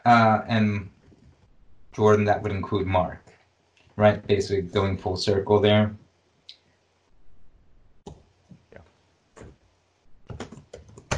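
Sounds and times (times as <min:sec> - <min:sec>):
speech: 0:00.0 - 0:01.0, 0:02.0 - 0:03.3, 0:04.0 - 0:06.0
typing on a computer keyboard during an online meeting: 0:10.2 - 0:11.1.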